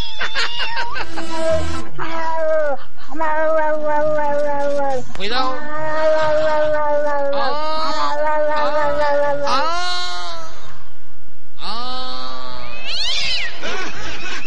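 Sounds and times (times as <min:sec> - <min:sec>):
laughter: 0:00.2 - 0:02.0, 0:05.9 - 0:07.1, 0:13.5 - 0:14.4
speech: 0:00.2 - 0:07.6
cat in heat yowling: 0:00.2 - 0:10.0.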